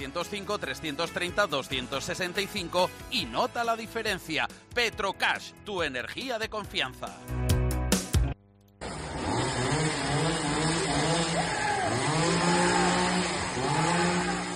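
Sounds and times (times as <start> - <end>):
speech: 0.0 - 7.4
chainsaw running during a dispute: 8.8 - 14.5
agitated voices shouting: 11.2 - 14.5.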